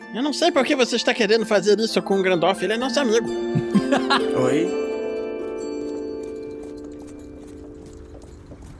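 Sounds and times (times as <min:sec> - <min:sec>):
speech: 0:00.1 - 0:04.8
laughter: 0:03.5 - 0:04.6
horse-drawn cart hooves clip-clopping: 0:05.0 - 0:08.7.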